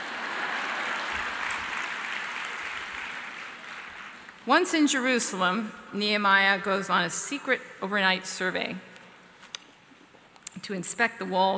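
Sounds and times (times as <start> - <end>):
audience applause: 0.0 - 4.4
speech: 4.4 - 8.9, 10.6 - 11.5.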